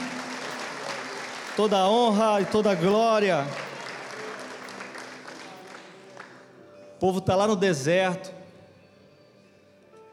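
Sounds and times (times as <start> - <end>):
audience applause: 0.0 - 6.4
speech: 1.6 - 3.6, 7.0 - 8.4.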